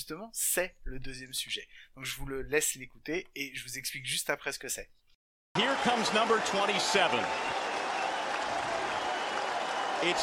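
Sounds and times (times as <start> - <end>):
speech: 0.0 - 5.0, 5.6 - 7.6, 10.0 - 10.2
baseball stadium crowd cheering and applauding: 5.6 - 10.2.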